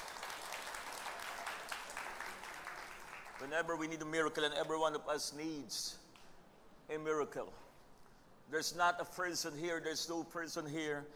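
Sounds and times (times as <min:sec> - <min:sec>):
audience clapping: 0:00.0 - 0:03.6
speech: 0:03.4 - 0:06.0, 0:06.9 - 0:07.7, 0:08.5 - 0:11.1.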